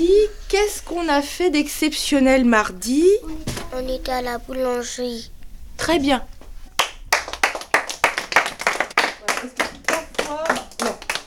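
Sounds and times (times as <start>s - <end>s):
speech: 0.0s - 6.4s
group clapping hands: 6.8s - 11.2s.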